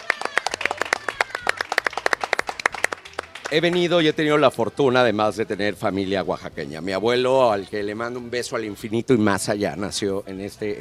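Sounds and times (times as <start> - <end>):
group applause: 0.0 - 4.0
speech: 3.5 - 10.7.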